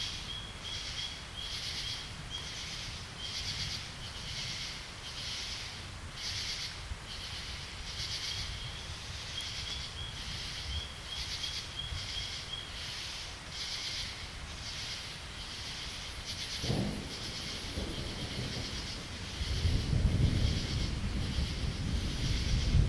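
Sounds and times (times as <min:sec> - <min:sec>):
crickets chirping in a night chorus in Brevard NC: 0:00.0 - 0:22.8
frogs calling in a night chorus in Brevard NC: 0:00.2 - 0:22.8
thunder rumbling in Brevard NC: 0:16.1 - 0:22.8.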